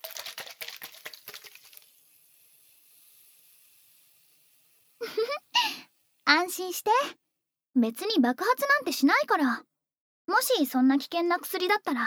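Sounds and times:
fine bubbles fizzing in clear liquid: 0.0s - 6.0s
speech: 6.5s - 7.2s, 7.8s - 9.7s, 10.3s - 12.0s.

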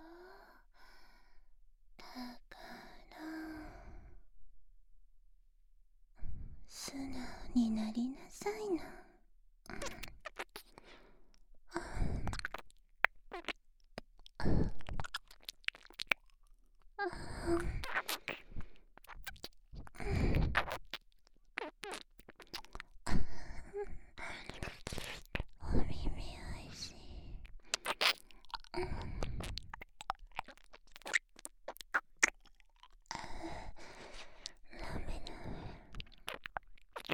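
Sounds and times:
breathing: 0.0s - 1.5s, 2.1s - 4.2s, 10.7s - 12.4s, 17.1s - 18.9s, 20.0s - 20.5s, 26.4s - 29.6s, 33.1s - 36.3s
whispering: 6.8s - 9.0s, 25.6s - 27.4s, 34.8s - 35.8s
ear licking sounds: 9.8s - 11.0s, 12.3s - 16.6s, 17.8s - 23.0s, 24.4s - 25.5s, 27.4s - 35.3s, 35.9s - 37.1s.

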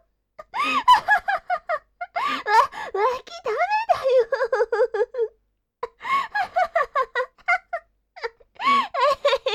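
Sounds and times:
girl laughing while tickled as a penalty game: 0.5s - 2.6s, 4.1s - 5.3s, 6.3s - 9.5s.

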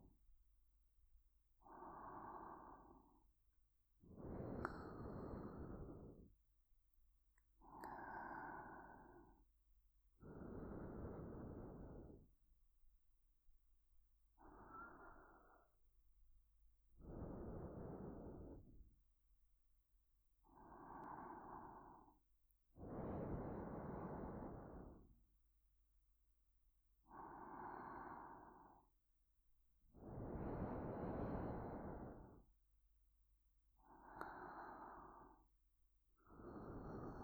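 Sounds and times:
looped sleeping breath: 1.6s - 3.3s, 4.1s - 6.4s, 7.6s - 9.4s, 10.2s - 12.4s, 14.4s - 15.8s, 17.0s - 18.8s, 20.6s - 22.2s, 22.8s - 25.1s, 27.1s - 29.0s, 30.0s - 32.5s, 33.8s - 35.6s, 36.2s - 37.2s.

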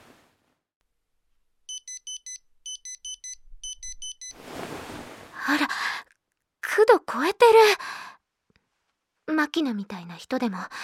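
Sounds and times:
digital thermometer beeping after taking a temperature: 1.7s - 4.4s
speech: 5.5s - 5.8s, 6.8s - 7.9s, 9.3s - 10.8s.

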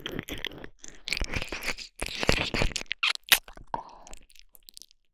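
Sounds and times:
ear licking sounds for falling asleep: 1.2s - 3.4s.

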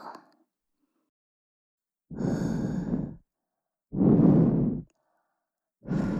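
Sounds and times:
ear cleaning of the right ear with a bamboo ear pick: 2.1s - 3.2s, 3.9s - 4.9s, 5.8s - 6.1s.

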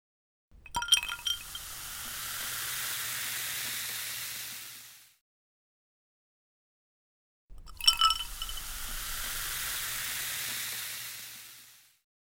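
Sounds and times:
carbonated drink fizzing: 0.6s - 5.1s, 7.5s - 11.9s.

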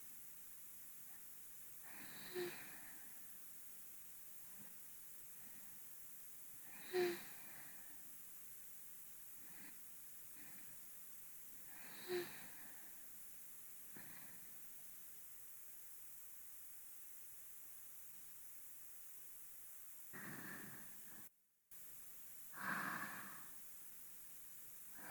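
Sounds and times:
person breathing in sleep, binaural: 1.8s - 3.4s, 6.6s - 8.2s, 9.4s - 10.9s, 11.6s - 13.2s, 13.9s - 14.6s, 20.1s - 21.3s, 22.5s - 23.6s.

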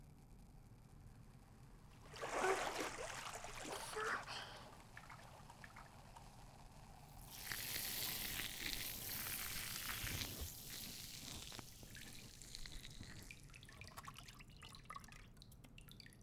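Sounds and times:
fizzing bubbly crackle: 1.8s - 16.2s.

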